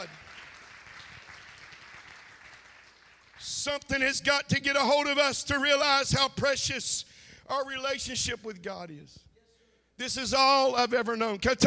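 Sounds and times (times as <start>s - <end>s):
audience clapping hands: 0.0s - 3.7s
speech: 3.4s - 9.3s, 10.0s - 11.6s.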